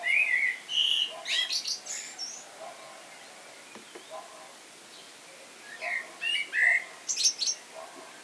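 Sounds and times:
Common blackbird singing: 0.0 - 2.4, 3.1 - 8.2.

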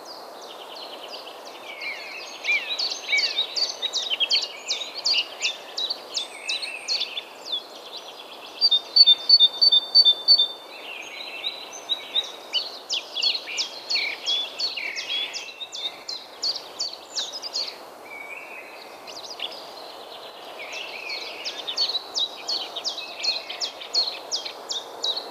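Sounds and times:
faint background hiss: 0.0 - 25.3
great tit calls: 1.7 - 25.3.

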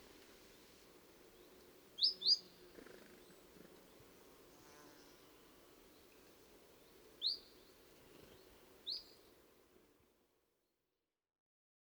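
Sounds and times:
great tit high thin calls with falling notes: 0.4 - 9.2.

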